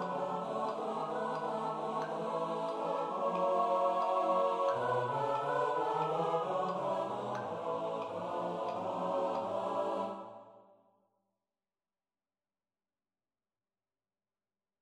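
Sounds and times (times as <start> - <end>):
SATB choir singing: 0.0 - 10.7.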